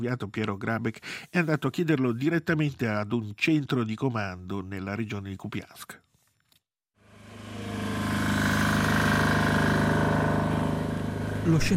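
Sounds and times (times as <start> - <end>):
speech: 0.0 - 6.1, 11.4 - 11.7
small generator running at full power outside a military command post in the Kupiansk region: 7.0 - 11.7.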